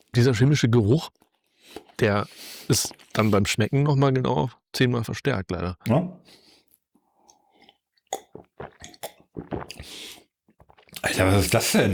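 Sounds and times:
speech: 0.2s - 6.4s, 8.4s - 10.2s, 11.0s - 11.9s
person chewing bread with crunching bites: 6.7s - 11.1s.

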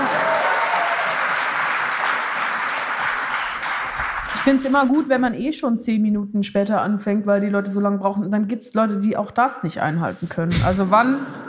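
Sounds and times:
audience applause: 0.0s - 5.1s
speech: 4.4s - 11.4s.

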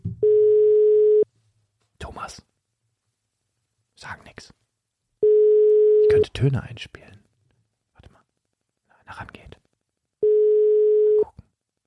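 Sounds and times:
telephone ringing tone: 0.2s - 1.2s, 5.2s - 6.2s, 10.2s - 11.3s
speech: 6.4s - 7.2s.

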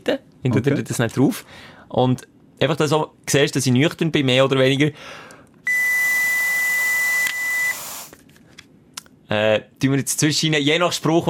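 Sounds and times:
speech: 0.0s - 5.8s, 9.3s - 11.2s
breathalyzer beeping: 5.7s - 8.1s
person blowing hard into a breathalyzer: 6.0s - 8.2s.

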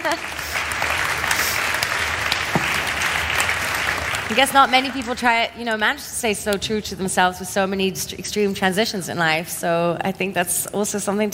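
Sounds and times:
speech: 0.0s - 0.6s, 4.3s - 11.3s
audience applause: 0.0s - 5.9s.

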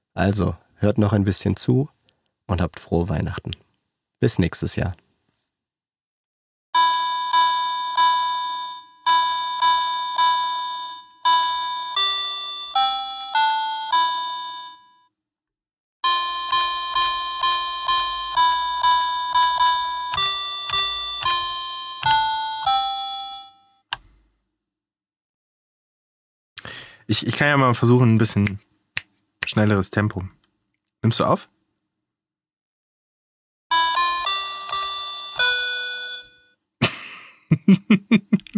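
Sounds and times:
speech: 0.2s - 5.1s, 27.4s - 28.7s, 29.5s - 30.4s, 31.0s - 31.5s
children's toy piano playing a simple melody: 6.8s - 15.1s, 16.0s - 23.8s, 33.7s - 36.5s
laughter: 36.8s - 38.5s.

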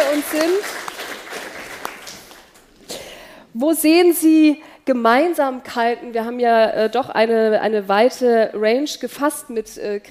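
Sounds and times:
audience applause: 0.0s - 2.6s
speech: 0.2s - 0.9s, 3.6s - 10.1s.

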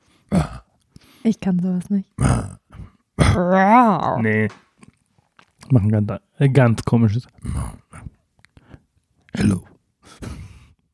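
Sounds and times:
person imitating a lion's roar: 0.3s - 0.7s, 2.2s - 4.2s
speech: 1.2s - 2.6s, 3.4s - 4.6s, 5.7s - 7.8s, 9.3s - 10.4s.

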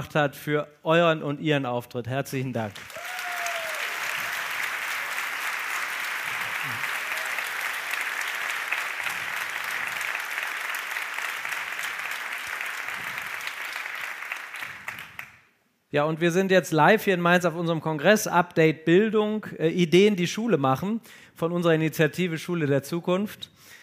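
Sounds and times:
speech: 0.0s - 3.0s, 15.9s - 23.8s
thunderous applause from audience: 2.8s - 15.3s.

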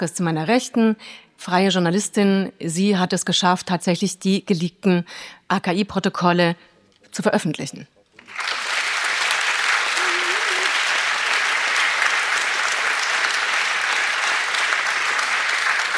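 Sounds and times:
speech: 0.0s - 8.5s
audience applause: 8.2s - 15.9s.

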